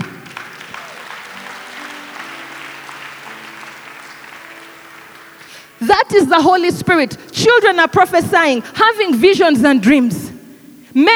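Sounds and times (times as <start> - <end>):
audience clapping: 0.0 - 7.1
speech: 5.8 - 10.3, 10.9 - 11.1.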